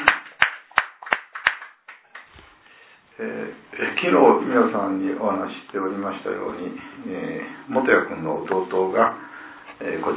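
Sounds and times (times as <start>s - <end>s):
sharp hand claps: 0.0s - 2.5s
speech: 4.0s - 10.1s.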